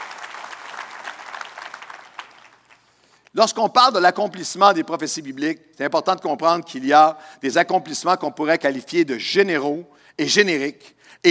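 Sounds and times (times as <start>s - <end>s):
audience applauding: 0.0s - 3.0s
speech: 3.4s - 11.2s.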